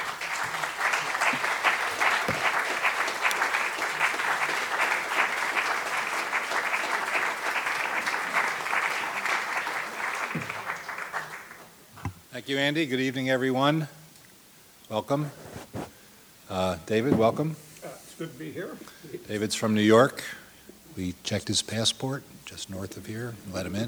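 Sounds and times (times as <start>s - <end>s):
audience applause welcoming two guests onto a stage: 0.0s - 11.7s
speech: 12.5s - 14.0s, 14.9s - 15.4s, 16.5s - 17.6s, 18.2s - 20.4s, 21.0s - 23.8s.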